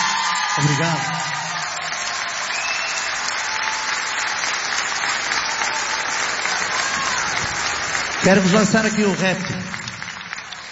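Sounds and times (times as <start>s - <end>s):
audience applause from a large audience: 0.0s - 10.7s
speech: 0.6s - 1.3s, 8.2s - 9.6s.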